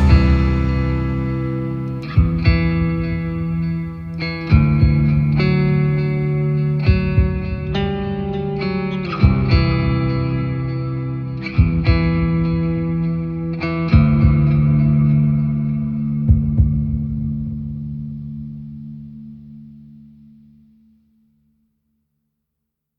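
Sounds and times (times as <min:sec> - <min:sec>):
instrumental music: 0:00.0 - 0:18.3.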